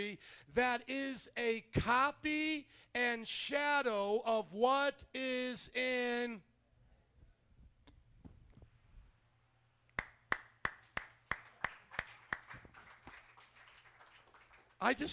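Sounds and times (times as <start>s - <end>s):
speech: 0.0s - 6.5s, 14.8s - 15.1s
hand clapping: 9.9s - 14.9s.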